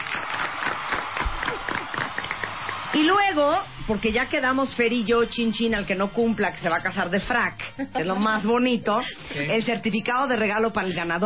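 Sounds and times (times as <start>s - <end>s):
crowd applauding: 0.0s - 4.8s
speech: 3.0s - 11.2s.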